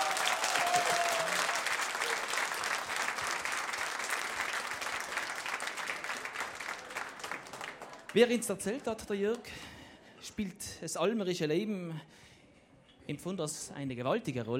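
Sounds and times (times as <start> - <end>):
audience applause: 0.0 - 9.4
speech: 8.2 - 12.3, 13.1 - 14.5.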